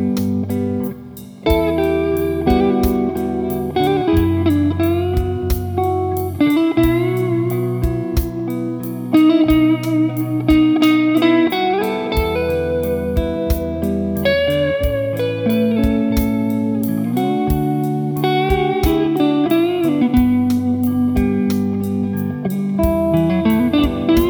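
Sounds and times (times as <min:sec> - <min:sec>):
baritone Strat electric guitar: 0:00.0 - 0:24.2.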